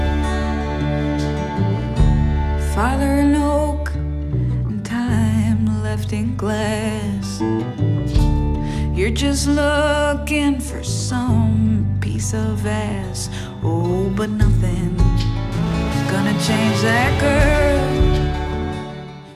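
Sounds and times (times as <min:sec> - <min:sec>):
riff: 0:00.0 - 0:19.3.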